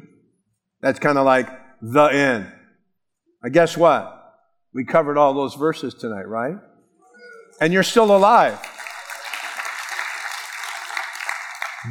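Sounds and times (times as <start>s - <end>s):
speech: 0.8s - 2.6s, 3.4s - 6.7s, 7.6s - 8.7s
church audience clapping at an evening Bible teaching: 7.8s - 11.8s.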